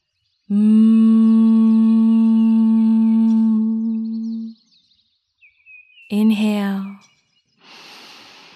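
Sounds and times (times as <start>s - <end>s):
speech: 0.5s - 1.0s
person humming with closed mouth: 0.5s - 4.6s.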